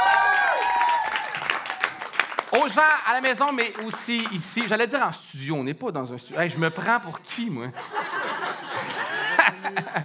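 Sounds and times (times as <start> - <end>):
audience applause: 0.0 - 4.8
speech: 2.5 - 8.2, 9.7 - 10.0
laughter: 6.3 - 10.0.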